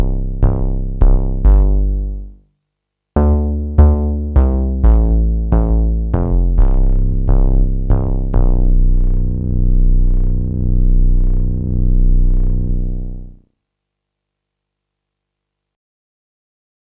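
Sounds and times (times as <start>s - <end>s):
suspense bass: 0.0s - 2.3s, 3.2s - 13.4s.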